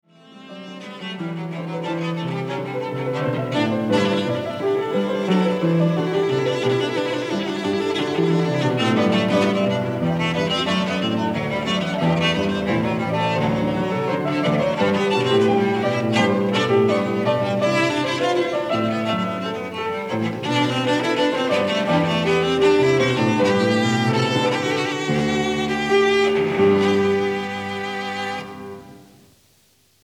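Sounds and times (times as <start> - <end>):
cello: 0.0 - 29.1
piano: 0.0 - 29.7.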